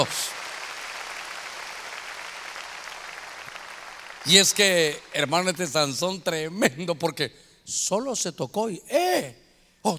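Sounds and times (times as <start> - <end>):
speech: 0.0 - 0.2, 4.2 - 9.9
audience clapping hands loudly: 0.0 - 5.9.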